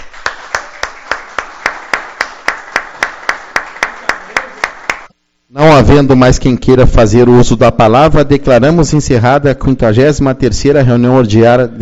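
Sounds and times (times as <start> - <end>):
hands clapping: 0.0 - 5.2
speech: 5.6 - 11.8.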